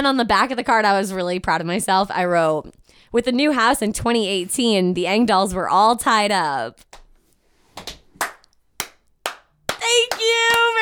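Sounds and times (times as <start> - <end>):
speech: 0.0 - 7.0
hand claps: 7.8 - 10.8.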